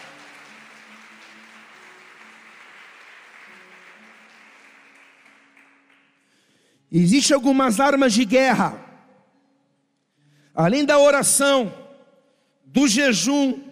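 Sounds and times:
audience applause: 0.0 - 6.1
speech: 6.9 - 8.8, 10.6 - 11.8, 12.7 - 13.7.

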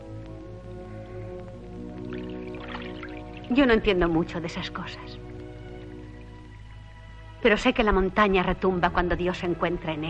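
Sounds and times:
orchestral music: 1.6 - 7.6
water being poured: 1.7 - 6.9
speech: 3.5 - 5.2, 7.4 - 10.0.

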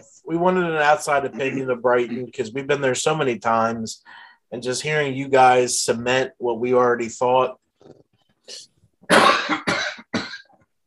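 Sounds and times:
speech: 0.3 - 9.6
person coughing after choking on water: 9.1 - 10.6.

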